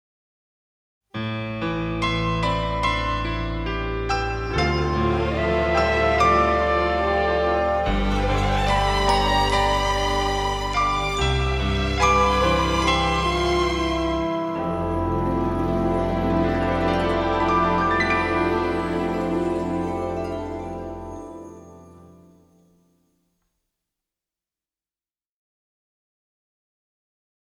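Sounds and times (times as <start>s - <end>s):
piano: 1.2s - 22.8s.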